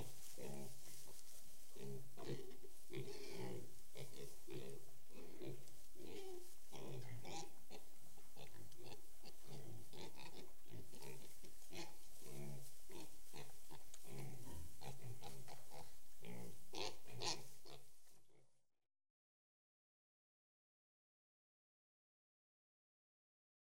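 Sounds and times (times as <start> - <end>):
pigs grunting and snorting in a shed: 0.0 - 0.8, 1.7 - 17.8.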